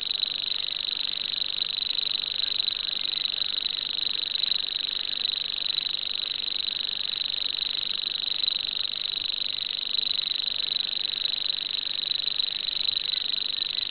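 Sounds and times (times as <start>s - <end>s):
grasshopper warbler: 0.0s - 13.8s.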